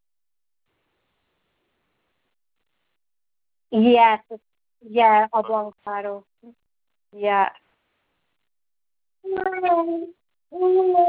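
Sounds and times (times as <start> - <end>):
speech: 3.7 - 7.6, 9.2 - 11.0
one-year-old baby babbling: 9.3 - 11.0.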